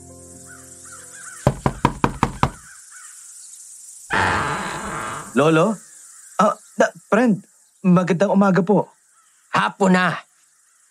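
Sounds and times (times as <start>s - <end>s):
loud knocking on a door: 1.5s - 2.7s
speech: 5.4s - 5.8s, 6.4s - 10.3s.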